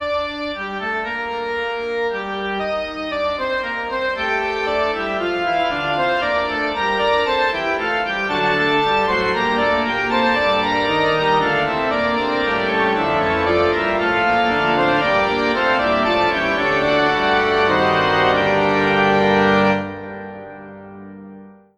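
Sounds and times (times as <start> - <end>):
fugue: 0.1 - 20.4.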